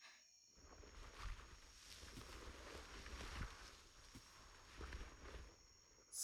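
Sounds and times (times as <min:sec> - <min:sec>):
ASMR massage sounds: 0:00.7 - 0:05.6.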